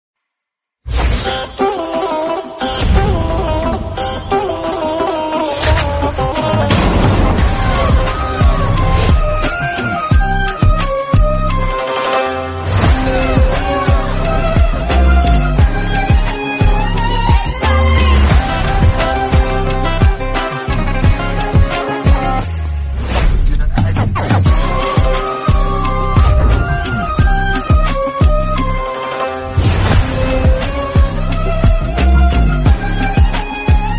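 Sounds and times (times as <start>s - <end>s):
instrumental background music: 0.8s - 33.9s.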